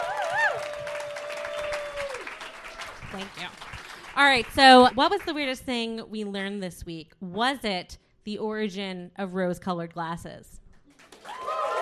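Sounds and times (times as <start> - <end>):
audience clapping: 0.0 - 5.5, 10.9 - 11.8
speech: 3.1 - 10.5.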